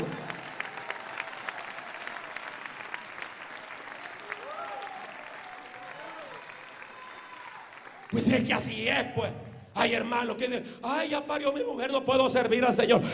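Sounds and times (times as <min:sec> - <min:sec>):
audience applause: 0:00.0 - 0:08.6
speech: 0:08.1 - 0:13.1.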